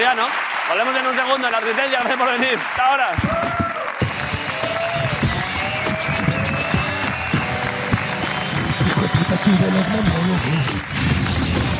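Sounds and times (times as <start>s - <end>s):
audience applause: 0.0s - 11.7s
speech: 0.7s - 3.6s, 9.4s - 11.7s
cheers and whistles: 3.2s - 11.0s.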